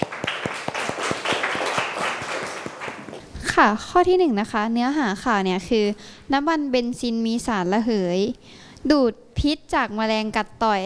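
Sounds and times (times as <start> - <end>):
classroom applause for classmates: 0.0 - 3.3
speech: 3.6 - 10.8.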